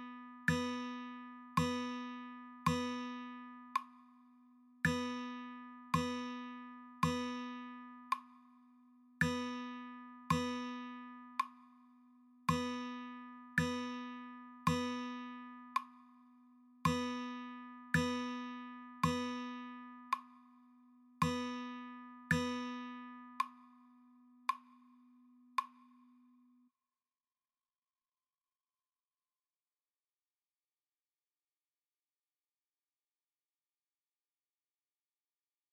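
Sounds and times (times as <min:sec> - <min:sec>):
slow guitar rhythm practice: 0:00.0 - 0:04.0, 0:04.8 - 0:08.4, 0:09.2 - 0:11.7, 0:12.5 - 0:16.1, 0:16.9 - 0:20.4, 0:21.2 - 0:23.8.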